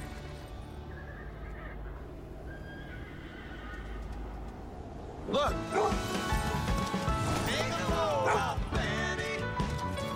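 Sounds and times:
Clydesdale horses neighing in a commercial: 2.3 - 4.5
hooves clopping: 2.3 - 10.1
speech: 5.3 - 6.2.

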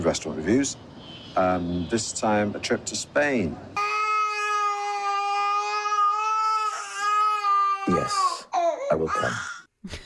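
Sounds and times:
speech: 0.0 - 3.8, 8.0 - 8.3, 8.9 - 10.0
child screaming: 3.8 - 9.6.

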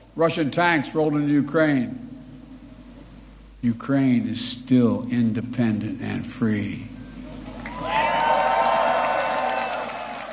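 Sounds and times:
speech: 0.2 - 2.1, 3.6 - 7.0
large crowd cheering and whooping: 7.5 - 10.3.

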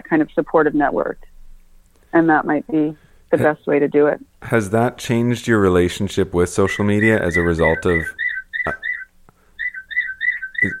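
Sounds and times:
speech: 0.1 - 1.4, 2.1 - 8.8
bird clock chirping: 6.5 - 10.7.

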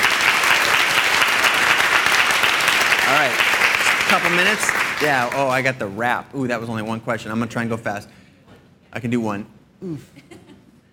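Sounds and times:
audience applause: 0.0 - 5.6
speech: 4.1 - 8.2, 8.9 - 10.4.

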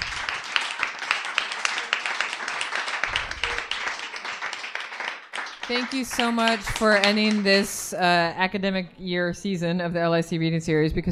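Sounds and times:
audience round of applause: 0.0 - 7.8
speech: 5.7 - 11.1.

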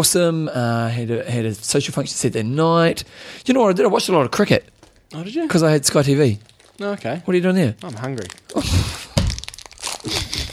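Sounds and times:
speech: 0.0 - 9.0
crinkly plastic packaging rustling as a cookie is pulled out: 4.3 - 10.5.

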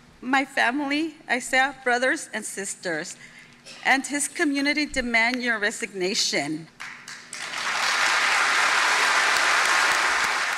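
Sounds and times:
speech: 0.2 - 6.8
crowd applause: 6.8 - 10.5
crowd cheering: 7.3 - 10.5.

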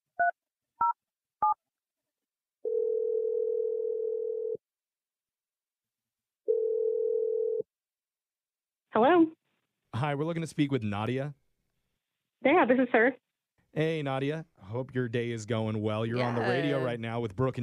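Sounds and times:
long steady low telephone tones: 2.6 - 4.6, 6.5 - 7.7
speech: 9.0 - 9.4, 10.0 - 11.4, 12.4 - 17.6.

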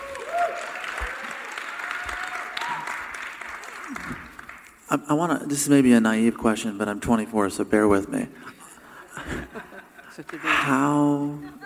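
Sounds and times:
faint cheers and whistles: 0.0 - 3.0
crowd clapping: 0.0 - 4.9, 10.2 - 10.9
speech: 4.9 - 8.6, 10.2 - 11.6
laughter: 8.4 - 11.6.

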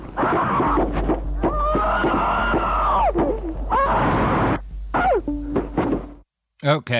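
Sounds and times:
human screams in a video: 0.2 - 5.2
speech: 6.7 - 6.9.

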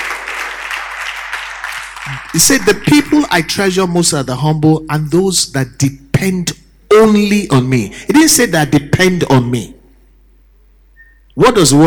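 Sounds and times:
audience clapping hands: 0.0 - 3.4
speech: 2.1 - 9.8, 11.4 - 11.8.

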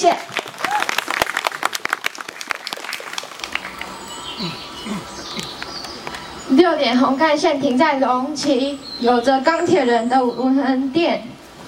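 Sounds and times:
speech: 0.0 - 0.3, 4.4 - 5.0, 6.5 - 11.3
audience applause: 0.0 - 6.3.

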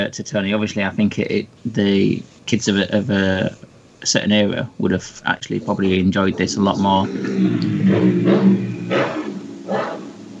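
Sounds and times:
speech: 0.0 - 9.2
motorbike passing outside: 6.4 - 9.6.

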